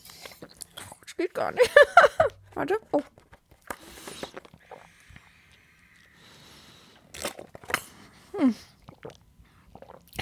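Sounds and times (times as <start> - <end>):
speech: 1.2 - 3.2, 8.4 - 8.7
person gulping down the last of a 0.5 litre drink: 3.2 - 6.2, 7.0 - 10.2.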